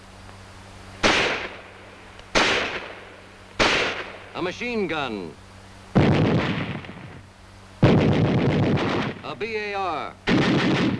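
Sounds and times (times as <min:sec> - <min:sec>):
mortar firing: 0:01.0 - 0:01.7, 0:02.3 - 0:03.0, 0:03.6 - 0:04.2, 0:06.0 - 0:07.2, 0:07.8 - 0:10.9
speech: 0:04.4 - 0:05.4, 0:09.2 - 0:10.8.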